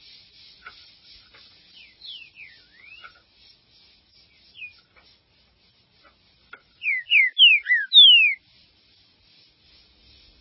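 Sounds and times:
Green-winged saltator song: 0.0 - 5.8, 6.4 - 8.6.

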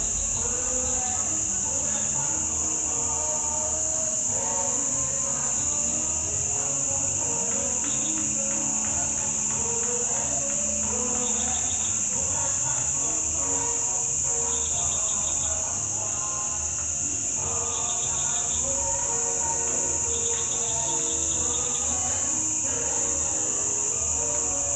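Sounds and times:
insects droning: 0.0 - 24.7
people singing: 0.0 - 24.7.

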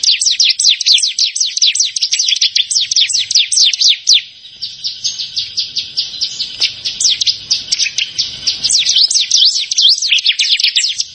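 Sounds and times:
bar-winged prinia song: 0.0 - 11.1.

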